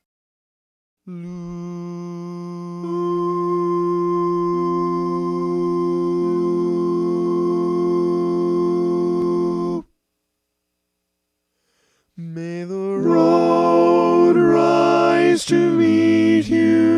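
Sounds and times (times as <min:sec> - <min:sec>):
tenor singing: 0:01.1 - 0:09.9, 0:12.2 - 0:16.9.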